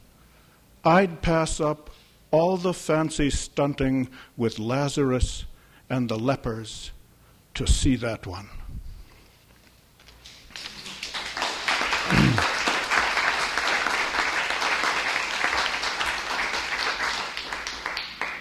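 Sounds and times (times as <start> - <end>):
speech: 0.8 - 7.0, 7.6 - 8.6
audience applause: 10.5 - 18.3.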